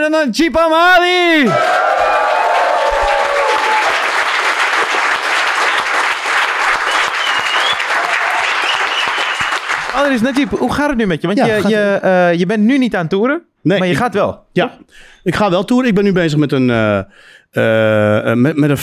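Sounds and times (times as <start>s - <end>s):
speech: 0.0s - 2.2s, 10.0s - 18.8s
live crowd applause: 1.4s - 10.7s.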